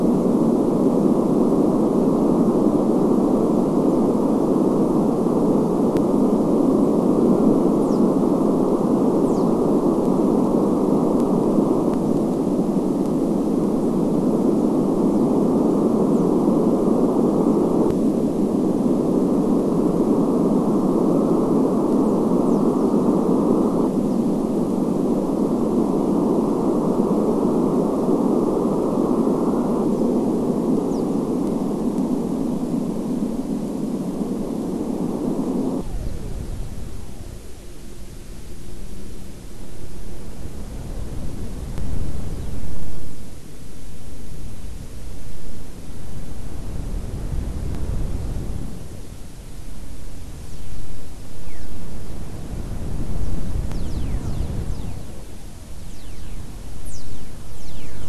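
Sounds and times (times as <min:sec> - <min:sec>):
EMFISIS waveform receiver audio: 0:00.0 - 0:58.0.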